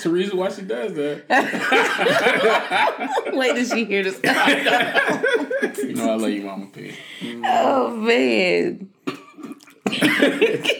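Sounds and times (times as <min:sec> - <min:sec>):
speech: 0:00.0 - 0:08.9, 0:09.9 - 0:10.7
laughter: 0:01.3 - 0:06.3, 0:09.9 - 0:10.7
person coughing and spluttering out a drink: 0:04.2 - 0:06.0, 0:09.0 - 0:10.7.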